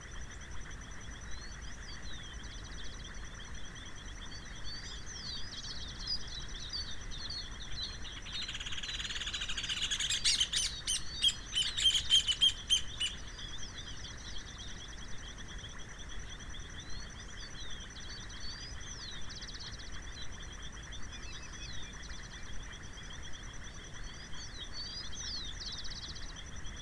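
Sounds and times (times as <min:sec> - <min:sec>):
high insect-like whine at summer dusk near Vedia, Buenos Aires province, Argentina: 0:00.0 - 0:26.8
birds chirping and calling at summer dusk near Vedia, Buenos Aires province, Argentina: 0:07.9 - 0:13.3.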